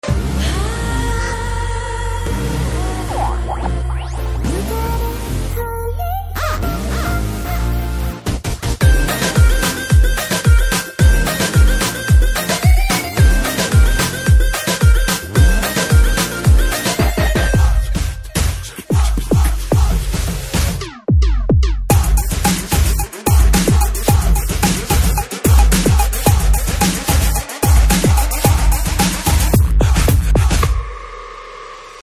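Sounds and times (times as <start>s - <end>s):
date night background music: 0.0s - 30.8s.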